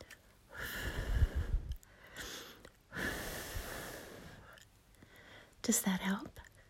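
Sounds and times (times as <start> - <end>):
warm breath blown softly: 0.5 - 4.6
speech: 5.7 - 6.4.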